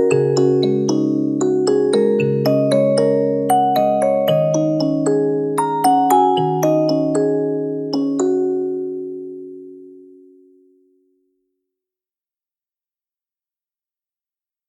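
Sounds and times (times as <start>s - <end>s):
music box: 0.0s - 10.2s.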